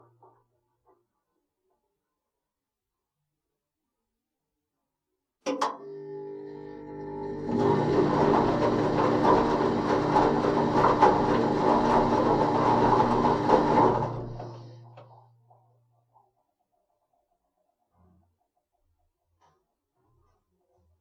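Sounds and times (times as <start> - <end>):
washing machine wash and spin cycle: 5.8 - 15.2.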